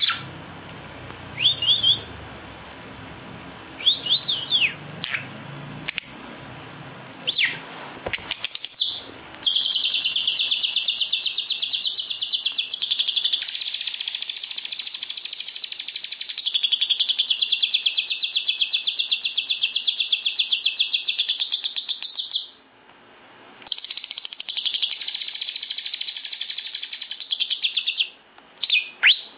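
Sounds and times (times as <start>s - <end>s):
lovebird giving shrill sharp chirps: 0.0s - 0.3s, 1.4s - 2.1s, 3.8s - 5.3s, 7.2s - 7.6s, 8.4s - 22.6s, 23.7s - 29.3s.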